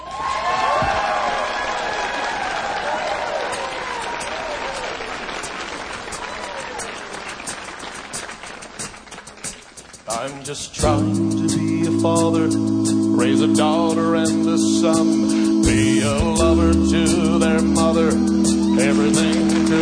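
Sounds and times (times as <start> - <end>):
audience applause with cheering for a live show in Branson: 0.0 - 10.5, 15.8 - 19.7
speech: 10.4 - 19.7
sustained musical tones: 10.8 - 19.7.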